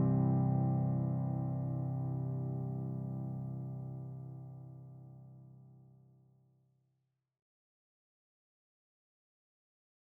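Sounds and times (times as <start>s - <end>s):
solo piano: 0.0s - 5.5s.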